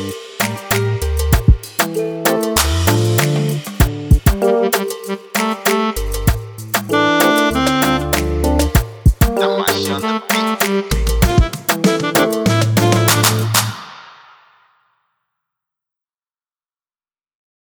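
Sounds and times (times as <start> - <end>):
afrobeat music: 0.0 - 14.1.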